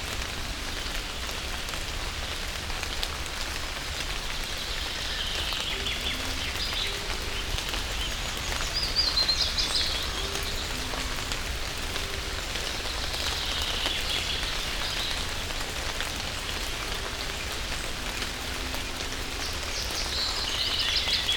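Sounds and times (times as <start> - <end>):
rain in a forest: 0.0 - 21.3.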